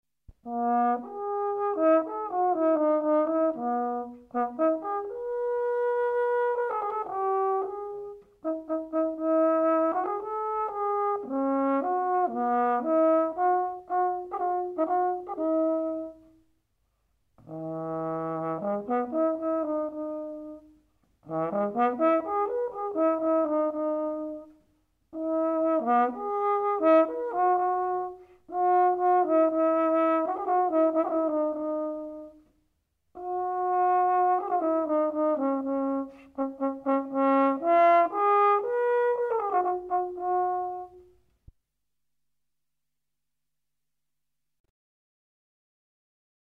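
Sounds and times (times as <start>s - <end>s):
horn concerto: 0.4s - 16.5s, 17.4s - 41.3s.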